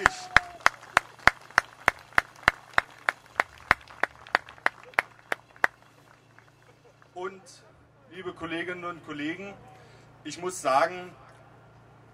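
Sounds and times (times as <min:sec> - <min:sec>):
steady rhythmic audience applause: 0:00.0 - 0:07.2
speech: 0:08.2 - 0:11.2.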